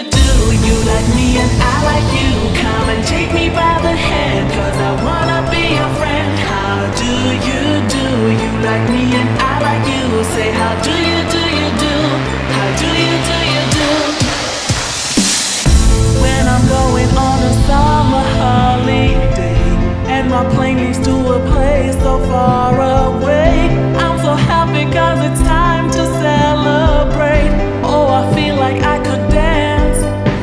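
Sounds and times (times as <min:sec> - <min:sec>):
slowed reverb remix: 0:00.1 - 0:30.4.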